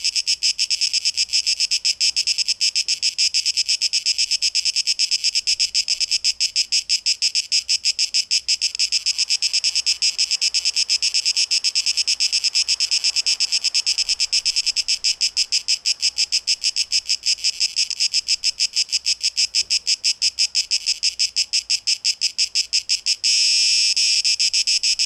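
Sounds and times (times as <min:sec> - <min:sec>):
cicada buzzing in pulses: 0:00.0 - 0:25.0.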